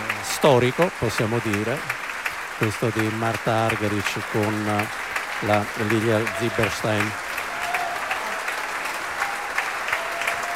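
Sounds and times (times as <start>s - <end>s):
concert audience applause: 0.0s - 10.5s
speech: 0.4s - 2.0s, 2.6s - 7.2s.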